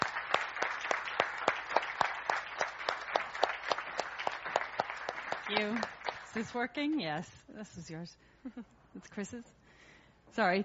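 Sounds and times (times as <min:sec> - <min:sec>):
sparse applause from a small group welcoming a speaker: 0:00.0 - 0:06.6
speech: 0:05.5 - 0:09.6, 0:10.3 - 0:10.6.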